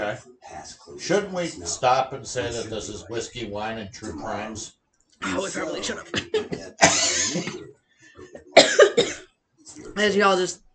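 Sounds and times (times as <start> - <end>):
speech: 0.0 - 7.6, 10.0 - 10.6
laughter: 0.0 - 8.8
person coughing after inhaling a sip of drink: 5.2 - 7.6, 8.3 - 9.2.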